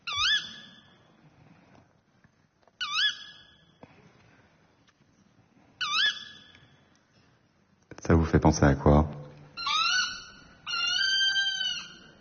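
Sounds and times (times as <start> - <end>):
tawny owl call: 0.0 - 0.9, 2.8 - 3.6, 5.8 - 6.7, 9.6 - 12.1
speech: 8.1 - 9.2.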